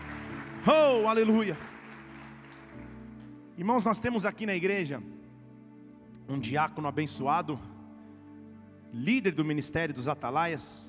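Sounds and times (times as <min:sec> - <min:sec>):
audience applause: 0:00.0 - 0:03.0
speech: 0:00.6 - 0:01.7, 0:03.6 - 0:05.2, 0:06.3 - 0:07.7, 0:08.9 - 0:10.8.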